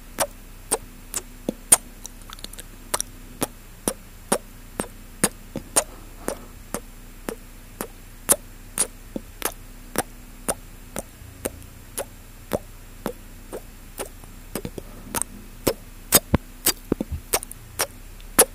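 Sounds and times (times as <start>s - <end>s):
faint low hum: 0.0s - 18.5s
wet mouth clicks and pops: 0.2s - 18.5s.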